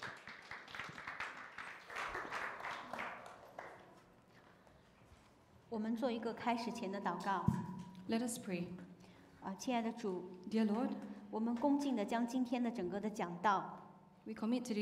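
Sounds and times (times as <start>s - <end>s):
church congregation applauding to welcome speakers on stage: 0.0s - 4.3s
speech: 5.7s - 14.8s.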